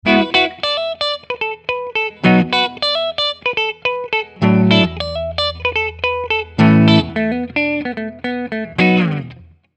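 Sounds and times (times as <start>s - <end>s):
Gibson Robot Les Paul clean electric guitar on neck and bridge pickups: 0.0s - 9.7s.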